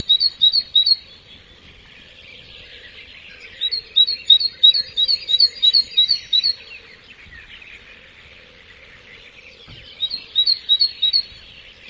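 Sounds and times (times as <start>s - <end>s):
birds: 0.0s - 11.8s.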